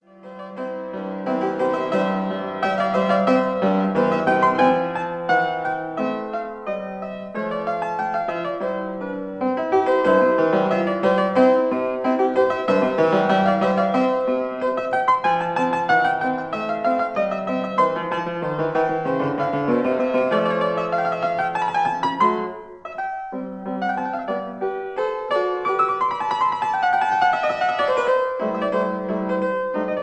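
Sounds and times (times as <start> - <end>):
piano sonata rondo: 0.0 - 30.0.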